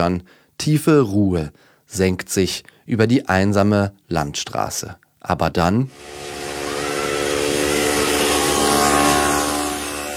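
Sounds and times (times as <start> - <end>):
speech: 0.0 - 6.4
moped engine passing: 5.9 - 10.1.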